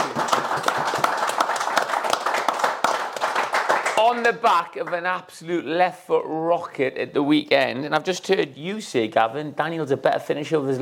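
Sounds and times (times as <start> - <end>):
round of applause: 0.0 - 5.1
speech: 4.0 - 10.8.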